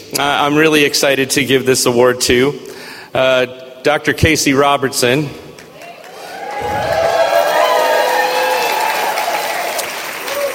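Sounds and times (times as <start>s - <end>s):
speech: 0.1s - 5.5s
audience applause: 5.8s - 10.5s.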